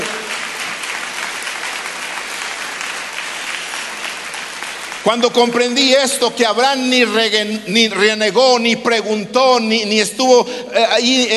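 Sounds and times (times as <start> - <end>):
audience applause: 0.0 - 6.0
speech: 5.0 - 11.3.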